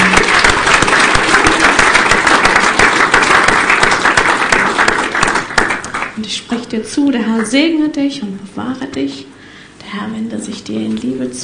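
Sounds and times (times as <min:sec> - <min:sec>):
audience applause: 0:00.0 - 0:06.2
speech: 0:06.3 - 0:11.4.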